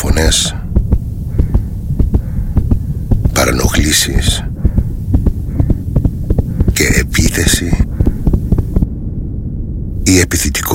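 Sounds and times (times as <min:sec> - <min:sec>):
speech: 0:00.0 - 0:00.6, 0:03.4 - 0:04.5, 0:07.3 - 0:07.8, 0:10.1 - 0:10.7
constant deep hum: 0:00.0 - 0:10.7
shop assistant's heartbeat: 0:00.1 - 0:09.1.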